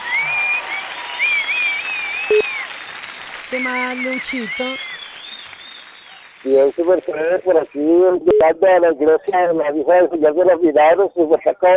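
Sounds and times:
applause: 0:00.0 - 0:08.0
speech: 0:03.5 - 0:04.9, 0:06.4 - 0:11.7.

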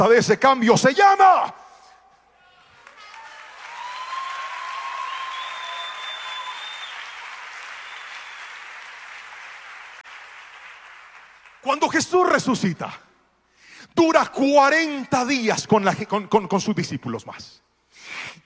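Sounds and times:
speech: 0:00.0 - 0:01.6, 0:11.8 - 0:13.1, 0:14.0 - 0:18.4
audience cheering and clapping at a church youth event: 0:02.4 - 0:11.8
shrill whistles: 0:03.8 - 0:08.9.

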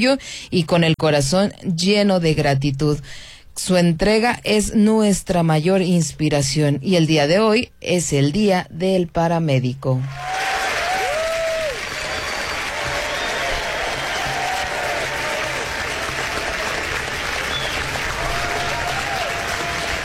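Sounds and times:
speech: 0:00.0 - 0:10.6
audience applause: 0:10.1 - 0:20.0.

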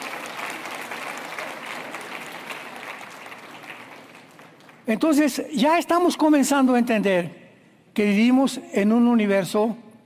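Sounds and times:
audience applauding: 0:00.0 - 0:04.9
speech: 0:04.9 - 0:07.4, 0:08.0 - 0:09.8.

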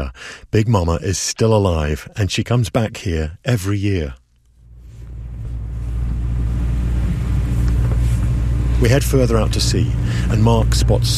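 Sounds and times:
speech: 0:00.0 - 0:04.2, 0:08.8 - 0:11.1
boat motor running: 0:04.7 - 0:11.1.

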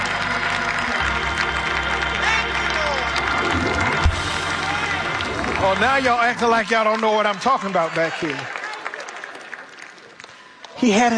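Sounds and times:
audience cheering and hollering: 0:00.0 - 0:09.8
low sustained hum: 0:01.0 - 0:06.5
speech: 0:05.7 - 0:08.6, 0:10.8 - 0:11.1.

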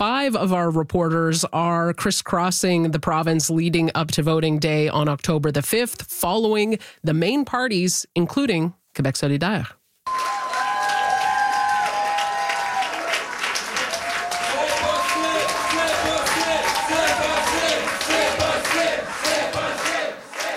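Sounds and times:
speech: 0:00.0 - 0:09.8
supporters cheering at Québec solidaire campaign headquarters in Taschereau, Quebec City: 0:10.1 - 0:20.5
supporters clapping: 0:10.1 - 0:20.5.

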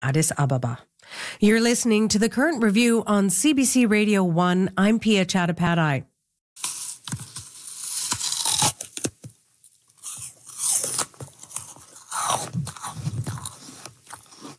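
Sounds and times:
speech: 0:00.0 - 0:06.7
person biting into a crispy crunchy apple: 0:06.6 - 0:09.3, 0:09.9 - 0:14.5.

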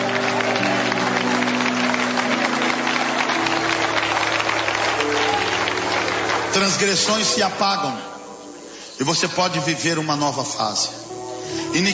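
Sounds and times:
audience clapping loudly: 0:00.0 - 0:07.8
low sustained musical tone: 0:00.0 - 0:11.9
speech: 0:06.6 - 0:08.1, 0:09.0 - 0:11.0, 0:11.7 - 0:11.9.

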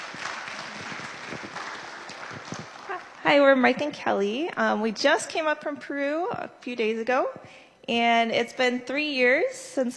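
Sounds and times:
audience applause: 0:00.0 - 0:03.3
speech: 0:03.3 - 0:09.9.

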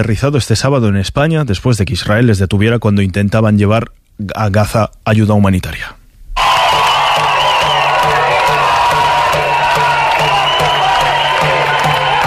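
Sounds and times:
speech: 0:00.0 - 0:06.0
crowd applauding and cheering at airport arrival in Madrid Barajas: 0:06.4 - 0:12.2.

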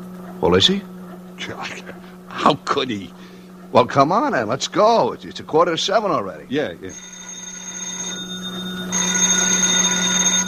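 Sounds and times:
speech: 0:00.4 - 0:07.1
telephone ringing: 0:06.7 - 0:10.4.

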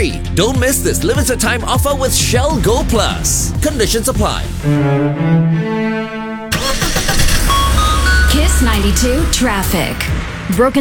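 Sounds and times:
speech: 0:00.0 - 0:06.2, 0:08.6 - 0:10.7
car engine starting: 0:02.3 - 0:10.7.

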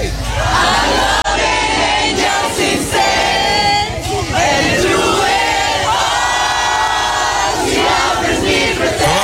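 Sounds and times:
cheering and shouts: 0:00.0 - 0:09.2
large crowd of fans singing together outdoors: 0:00.0 - 0:09.2.

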